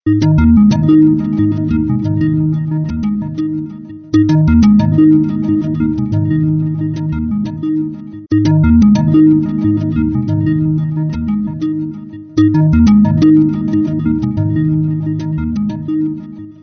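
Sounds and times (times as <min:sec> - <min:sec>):
ringtone: 0:00.0 - 0:16.6.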